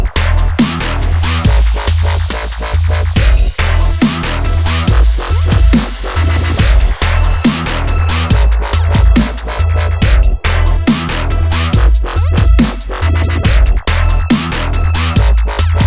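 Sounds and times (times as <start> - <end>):
reggae music: 0.2 - 15.8.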